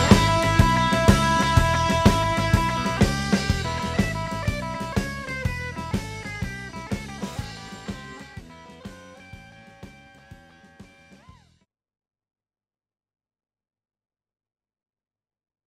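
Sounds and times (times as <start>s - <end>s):
blues music: 0.0s - 11.5s.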